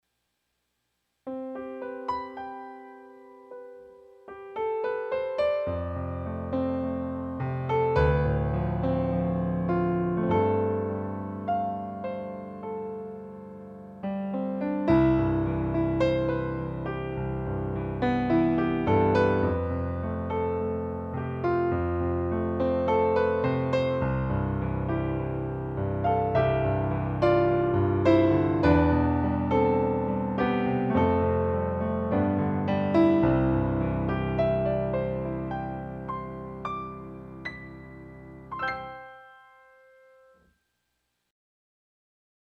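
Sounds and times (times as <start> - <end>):
Kawai MP11 Concert Grand digital piano: 0.2 - 40.6.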